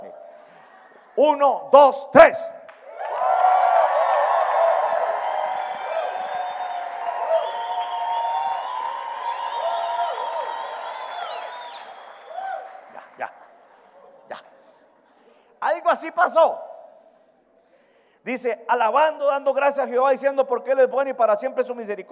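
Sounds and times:
speech: 0:01.2 - 0:02.6, 0:16.2 - 0:16.6, 0:18.3 - 0:22.1
crowded room shouting, whooping and applauding: 0:02.6 - 0:13.7.

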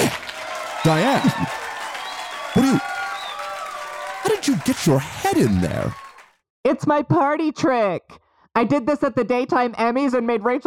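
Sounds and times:
round of applause: 0:00.0 - 0:06.4
speech: 0:00.8 - 0:01.6, 0:02.6 - 0:02.9, 0:04.3 - 0:06.0, 0:06.7 - 0:10.6.

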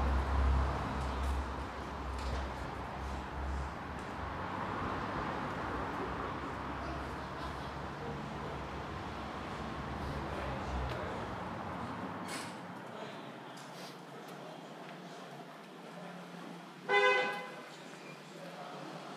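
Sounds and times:
morning traffic engine rumble on Commercial Street in Harrogate: 0:00.0 - 0:19.1
short car horn honk: 0:16.9 - 0:17.6.

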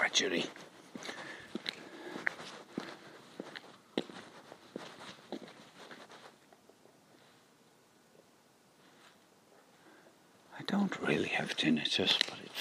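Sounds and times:
footsteps walking outdoors: 0:00.0 - 0:07.4
quiet hiss: 0:00.0 - 0:12.6
speech: 0:00.1 - 0:01.2, 0:11.4 - 0:12.6.

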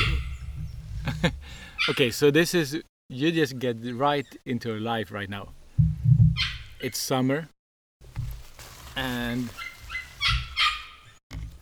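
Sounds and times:
dog barking: 0:00.0 - 0:00.4, 0:01.8 - 0:02.1, 0:06.4 - 0:06.8, 0:09.6 - 0:11.0
speech: 0:01.2 - 0:05.6, 0:06.4 - 0:07.6, 0:09.0 - 0:09.6.

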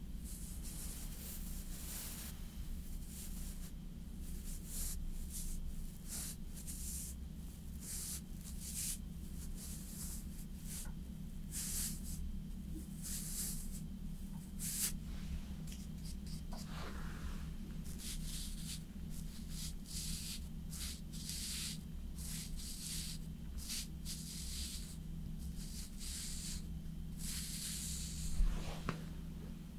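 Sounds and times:
makeup brush strokes: 0:00.2 - 0:12.2, 0:12.8 - 0:29.0
low hum: 0:13.9 - 0:17.9.

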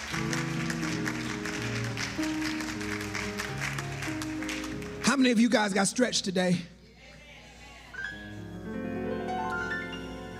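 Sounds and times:
sustained keyboard or organ chords: 0:00.0 - 0:05.1, 0:08.1 - 0:10.3
crowd clapping: 0:00.0 - 0:05.6
speech: 0:05.2 - 0:06.8.

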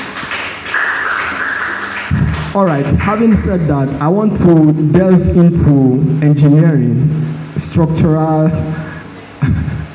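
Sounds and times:
audience clapping: 0:00.0 - 0:03.5
speech: 0:02.6 - 0:08.8.

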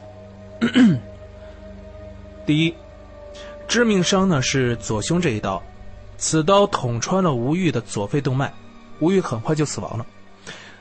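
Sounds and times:
throat clearing: 0:00.6 - 0:01.1
speech: 0:00.7 - 0:01.1, 0:02.5 - 0:02.8, 0:03.4 - 0:10.6.

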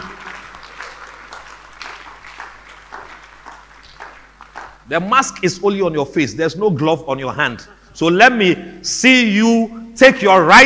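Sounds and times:
audience clapping hands: 0:00.0 - 0:04.9
speech: 0:04.9 - 0:10.6.

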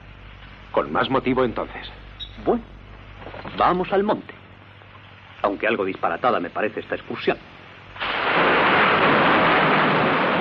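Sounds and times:
speech: 0:00.7 - 0:02.8, 0:03.6 - 0:04.3, 0:05.4 - 0:07.5
thunder clap: 0:08.0 - 0:10.3.

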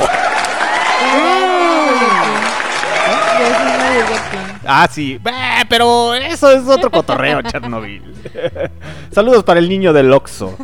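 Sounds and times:
cheering: 0:00.0 - 0:04.6
applause: 0:00.0 - 0:04.7
speech: 0:04.7 - 0:10.6
laughter: 0:05.9 - 0:09.0.

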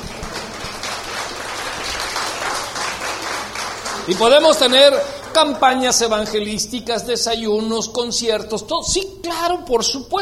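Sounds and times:
audience applause: 0:00.0 - 0:06.5
speech: 0:04.1 - 0:10.2.

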